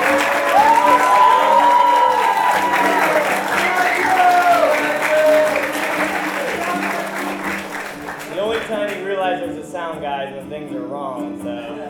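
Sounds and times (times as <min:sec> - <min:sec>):
audience applause: 0:00.0 - 0:09.0.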